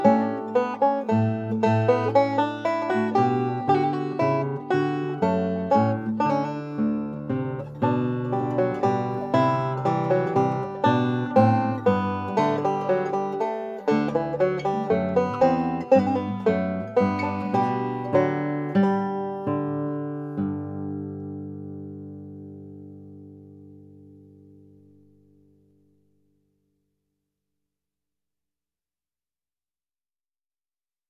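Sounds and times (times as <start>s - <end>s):
banjo playing a minuet in G major: 0.0s - 24.9s.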